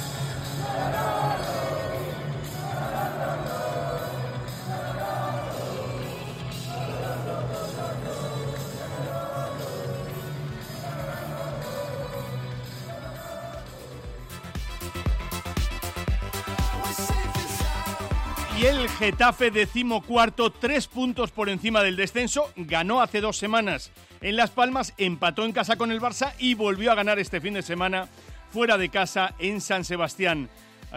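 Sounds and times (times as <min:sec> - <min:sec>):
stadium crowd celebrating a comeback goal: 0:00.0 - 0:22.1
speech: 0:18.6 - 0:30.9.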